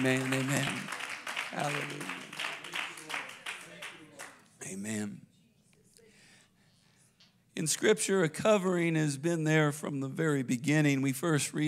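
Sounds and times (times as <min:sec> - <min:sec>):
speech: 0:00.0 - 0:02.2, 0:04.7 - 0:05.3, 0:07.6 - 0:11.6
audience hand clapping in praise: 0:00.0 - 0:04.5.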